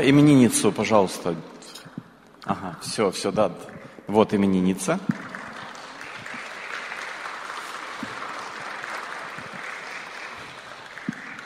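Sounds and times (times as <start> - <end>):
speech: 0.0 - 1.6, 2.4 - 5.3
audience applauding: 5.0 - 11.4.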